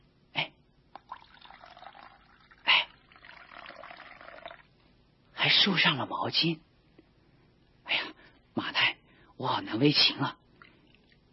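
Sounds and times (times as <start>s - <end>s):
water poured into a basin: 0.9s - 4.7s
speech: 5.5s - 6.7s, 9.4s - 10.4s.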